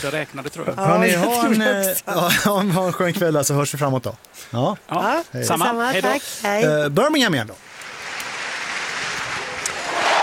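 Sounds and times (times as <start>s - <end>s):
speech: 0.0s - 7.7s
stadium crowd cheering: 9.3s - 10.2s.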